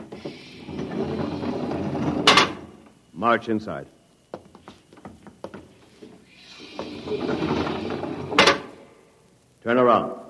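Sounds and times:
airlock door sliding open: 0.0 - 2.7, 6.4 - 8.8
hissing air from airlock door: 0.0 - 2.9, 5.8 - 9.4
speech: 3.2 - 4.0.

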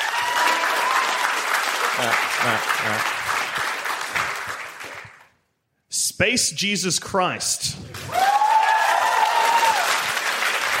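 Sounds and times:
crowd applauding: 0.0 - 5.4, 7.9 - 10.7
speech: 2.0 - 3.2, 6.2 - 8.3.

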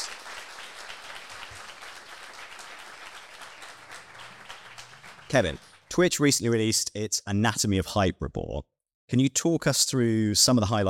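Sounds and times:
audience applause welcoming guests at the Havas Cafe: 0.0 - 5.9
speech: 5.3 - 10.8.

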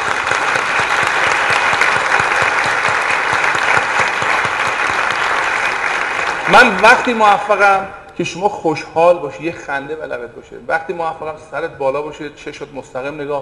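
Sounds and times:
audience clapping at a motivational seminar on wealth and happiness: 0.0 - 7.8
speech: 6.5 - 13.4.

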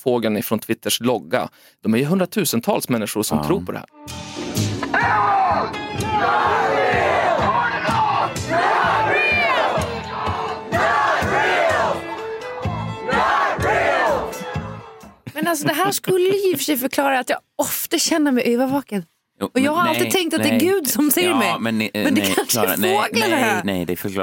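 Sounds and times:
speech: 0.0 - 7.1, 15.5 - 24.2
large crowd of protesters shouting and chanting at a demonstration: 4.8 - 15.2, 22.4 - 23.6
laughter: 15.2 - 16.7, 19.6 - 23.7.

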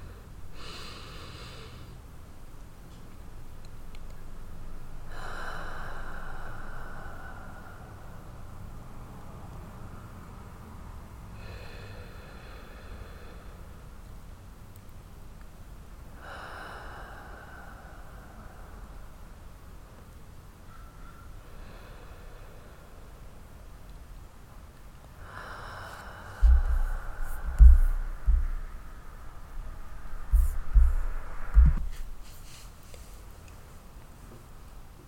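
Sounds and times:
slow deep breathing in a guided breathing exercise: 0.0 - 2.1, 4.6 - 14.3, 16.0 - 19.9, 21.2 - 23.9, 25.0 - 33.3
soft hiss: 0.0 - 35.0.

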